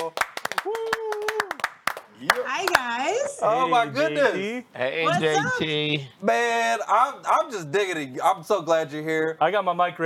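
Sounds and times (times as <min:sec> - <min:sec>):
audience clapping to welcome a guest: 0:00.0 - 0:03.0
speech: 0:03.4 - 0:10.0.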